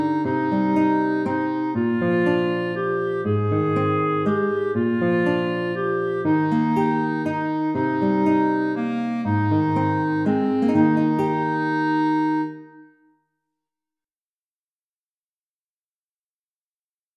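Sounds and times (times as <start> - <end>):
guitar: 0.0 - 13.2
clarinet: 0.0 - 13.3.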